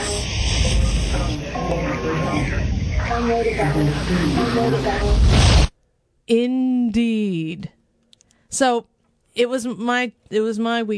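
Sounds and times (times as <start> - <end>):
white noise hiss: 0.0 - 5.8
speech: 2.0 - 5.6, 6.3 - 7.8, 8.5 - 10.9.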